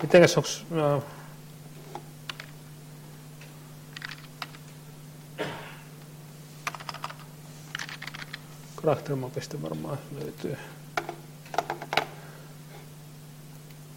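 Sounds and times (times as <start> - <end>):
speech: 0.0 - 1.2, 8.8 - 10.8
steady low electrical hum: 0.0 - 13.9
typing on a computer keyboard: 2.3 - 2.6, 3.9 - 4.6, 6.6 - 8.4.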